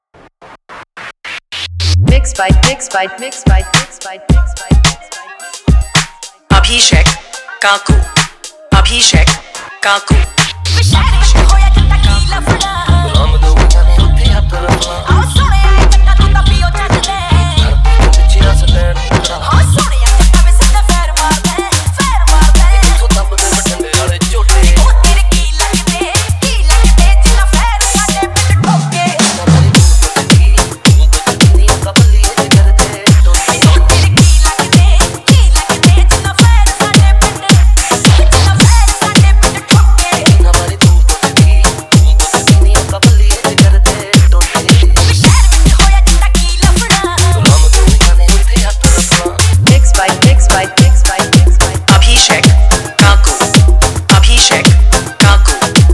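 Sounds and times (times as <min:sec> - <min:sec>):
hard bass remix song: 0:00.0 - 0:55.9.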